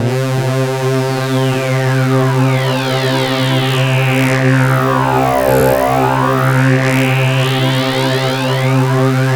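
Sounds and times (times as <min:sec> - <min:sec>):
Roland K-2000 synthesizer: 0:00.0 - 0:09.3.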